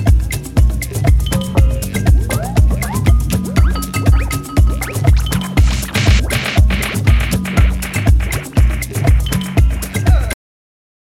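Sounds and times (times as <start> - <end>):
DJ drum beat: 0.0 - 10.4.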